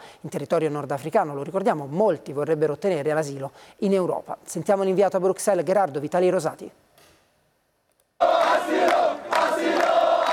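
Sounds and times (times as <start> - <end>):
speech: 0.2 - 6.9
crowd of migrants chanting in chorus: 8.2 - 10.3.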